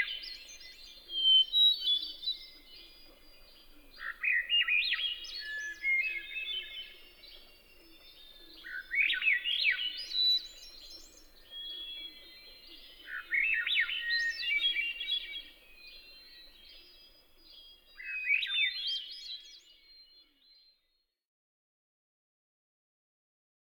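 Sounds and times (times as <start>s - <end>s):
Hermit Thrush singing in North America: 0.0s - 20.8s.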